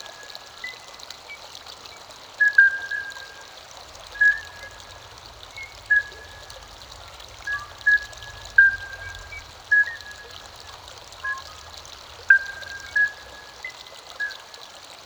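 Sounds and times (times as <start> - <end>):
ambience: 1.8 - 14.5.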